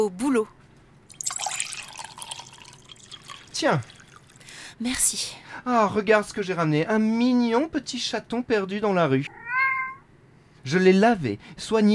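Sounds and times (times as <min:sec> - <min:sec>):
speech: 0:00.0 - 0:00.6, 0:03.6 - 0:03.9, 0:04.8 - 0:09.4, 0:10.6 - 0:11.9
beer being poured into a glass: 0:01.1 - 0:04.6.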